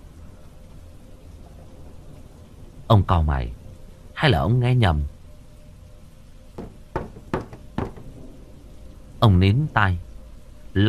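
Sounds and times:
speech: 0:02.9 - 0:03.6, 0:04.2 - 0:05.1, 0:09.2 - 0:10.1
firm knocks on a wooden door: 0:06.6 - 0:08.2.

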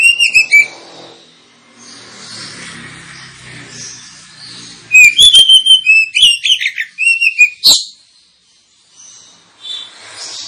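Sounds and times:
Oriental magpie-robin song: 0:00.0 - 0:10.4.

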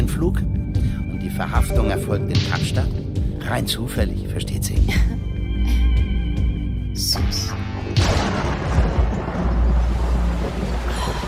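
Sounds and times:
speech: 0:00.2 - 0:00.6, 0:01.3 - 0:06.0, 0:07.0 - 0:08.2
thunder from a dry thunderstorm: 0:07.9 - 0:11.2.

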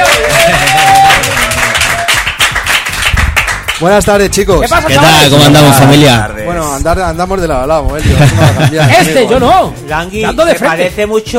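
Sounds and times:
crowd whooping and cheering: 0:00.0 - 0:02.4
audience applause for a music group being introduced: 0:00.0 - 0:03.8
speech: 0:03.8 - 0:11.3
laughter: 0:08.0 - 0:09.7.

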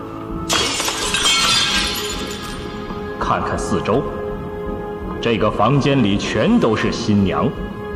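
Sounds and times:
glass pane for a Pepper's ghost illusion shattering while being moved: 0:00.5 - 0:03.2
speech: 0:03.3 - 0:04.2, 0:05.2 - 0:07.8.

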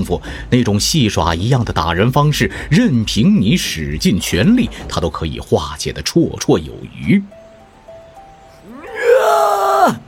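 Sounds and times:
speech: 0:00.0 - 0:07.4, 0:09.8 - 0:10.0
man roaring in audio drama: 0:08.6 - 0:10.0.

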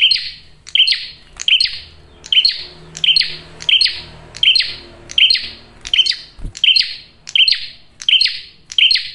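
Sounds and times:
bar-winged prinia rasping chirp notes: 0:00.0 - 0:09.1
low rumble: 0:01.8 - 0:07.3.

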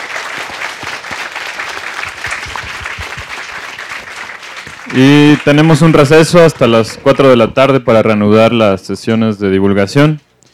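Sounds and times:
audience applause: 0:00.0 - 0:06.8
speech: 0:04.9 - 0:10.2.

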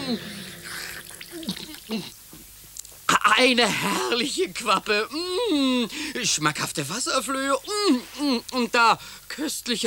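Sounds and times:
speech: 0:00.1 - 0:00.4, 0:01.9 - 0:02.2, 0:03.3 - 0:09.8
water scooped up with the hands to drink: 0:00.8 - 0:02.1.

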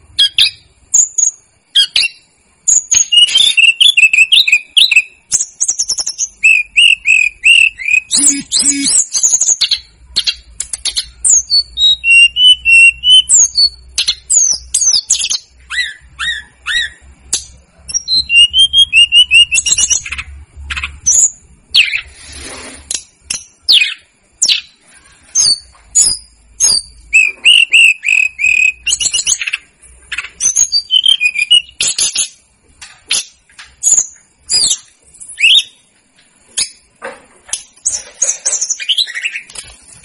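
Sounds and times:
snowy-browed flycatcher song: 0:00.2 - 0:32.4.

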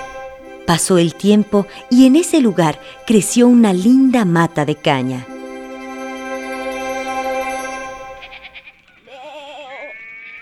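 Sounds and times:
speech: 0:00.7 - 0:05.3
goats bleating: 0:08.3 - 0:10.4.

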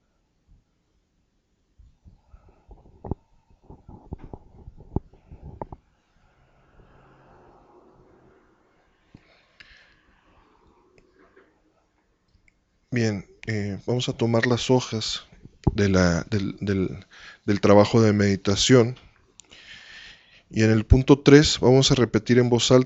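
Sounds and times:
slow deep guided breath during a meditation session: 0:05.2 - 0:11.4, 0:17.0 - 0:17.5, 0:19.4 - 0:20.5
speech: 0:13.0 - 0:19.0, 0:20.5 - 0:22.8.

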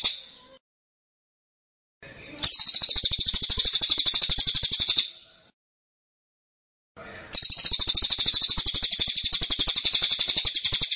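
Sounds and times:
bird song of buzzy chirps: 0:02.4 - 0:05.3, 0:07.3 - 0:10.9.

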